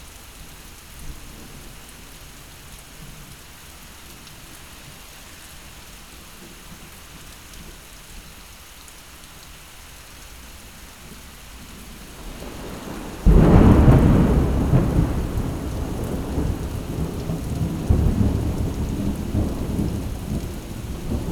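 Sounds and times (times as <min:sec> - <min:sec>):
thunderstorm: 0:11.8 - 0:21.3.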